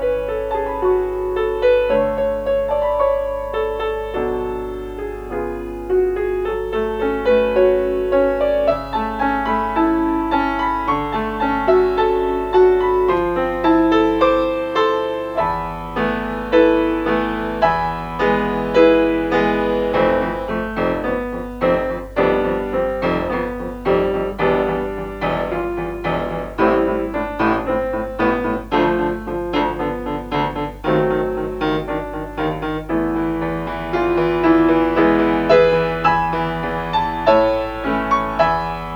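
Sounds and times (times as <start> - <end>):
piano: 0.0 - 38.9.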